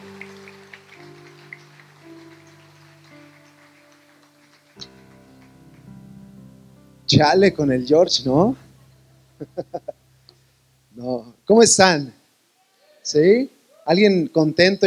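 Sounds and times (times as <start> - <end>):
crowd clapping: 0.0 - 6.6
sustained organ-like chords: 0.0 - 12.0
speech: 7.1 - 8.6, 9.4 - 9.9, 11.0 - 12.2, 13.0 - 14.8
laughter: 9.4 - 10.0.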